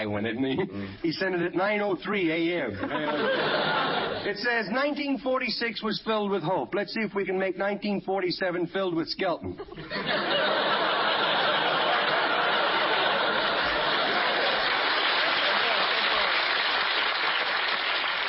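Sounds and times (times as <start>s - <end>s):
speech: 0.0s - 10.6s
laughter: 0.3s - 0.9s, 2.7s - 4.7s, 9.4s - 16.5s
audience applause: 10.5s - 18.2s.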